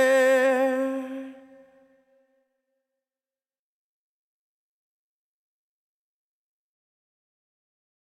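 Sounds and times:
person singing: 0.0s - 2.0s.

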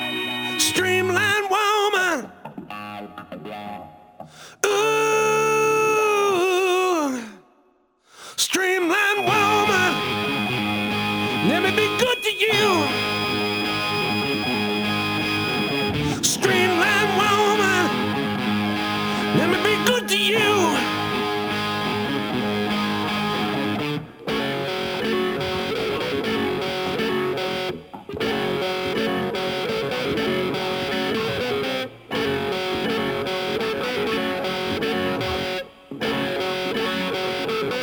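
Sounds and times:
additional instruments: 0.0s - 1.4s, 8.9s - 36.7s
vocals: 0.0s - 2.9s, 4.3s - 27.7s, 28.4s - 37.8s.

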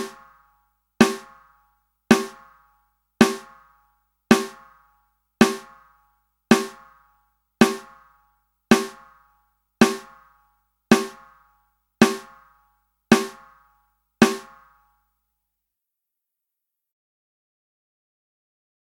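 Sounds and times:
drums: 0.0s - 0.3s, 1.0s - 1.4s, 2.1s - 2.5s, 3.2s - 3.6s, 4.3s - 4.7s, 5.4s - 5.8s, 6.5s - 6.9s, 7.6s - 8.0s, 8.7s - 9.1s, 9.8s - 10.2s, 10.9s - 11.3s, 12.0s - 12.4s, 13.1s - 13.5s, 14.2s - 14.6s.

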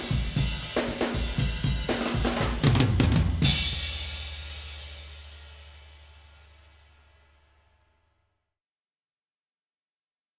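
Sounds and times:
drums: 0.0s - 7.4s.

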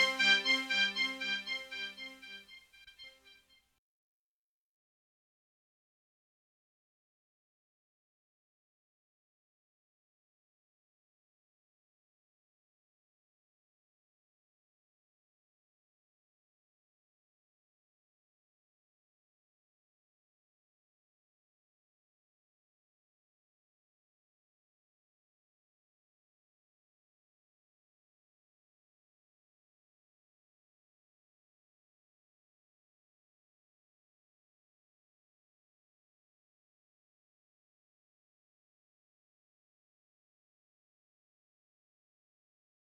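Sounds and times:
multitrack keyboard instrument playing: 0.0s - 2.4s.

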